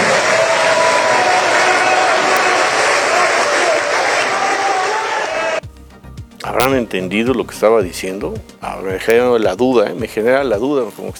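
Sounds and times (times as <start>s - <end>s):
crowd applauding: 0.0s - 5.6s
speech: 6.7s - 11.1s.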